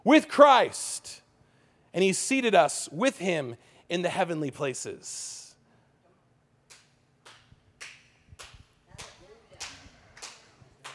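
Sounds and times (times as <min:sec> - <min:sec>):
speech: 0:00.0 - 0:01.2, 0:02.0 - 0:05.4
audience clapping: 0:06.7 - 0:10.9.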